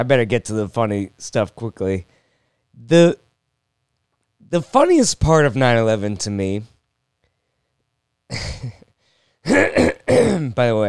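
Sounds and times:
speech: 0.0s - 2.2s, 2.8s - 3.2s, 4.4s - 6.7s, 8.3s - 8.8s, 9.4s - 10.8s
person clearing throat: 8.3s - 8.8s, 9.5s - 10.6s.

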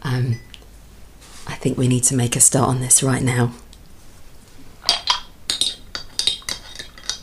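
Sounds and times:
speech: 1.6s - 3.7s
spoon stirring green tea clinking against a cup: 4.9s - 7.2s.

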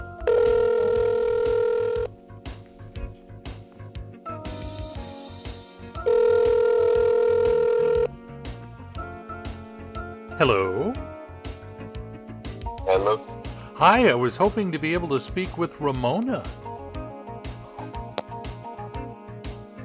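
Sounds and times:
soft rhythmic music bed: 0.0s - 19.8s
telephone ringback tone: 0.1s - 2.1s, 6.0s - 8.1s
speech: 10.4s - 11.0s, 13.8s - 16.6s.

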